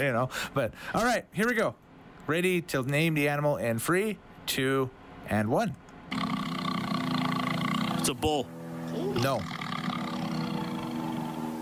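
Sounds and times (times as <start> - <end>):
speech: 0.0 - 6.2, 8.0 - 8.6, 9.2 - 9.6
tiger roar: 6.1 - 8.3, 8.9 - 11.5.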